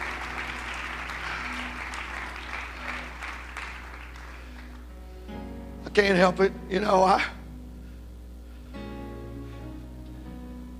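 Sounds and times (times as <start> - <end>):
audience clapping hands: 0.0 - 4.9
speech: 6.0 - 7.4.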